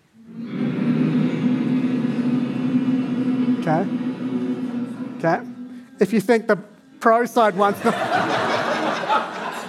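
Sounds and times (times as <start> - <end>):
audience humming to vote: 0.0 - 9.6
speech: 5.2 - 8.3
laughter: 7.5 - 9.6.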